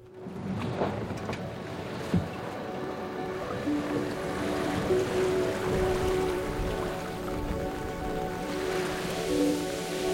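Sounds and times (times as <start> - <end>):
waves and rushing water against a moving boat at sea: 0.2 - 10.1.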